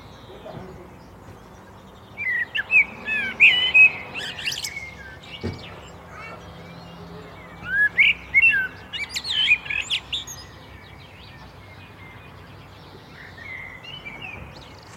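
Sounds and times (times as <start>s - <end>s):
common blackbird Turdus merula singing: 0.0s - 14.9s.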